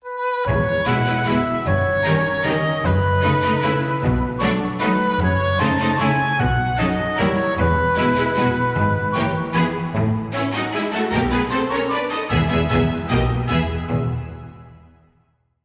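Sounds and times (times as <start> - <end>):
waltz music: 0.0 - 15.1.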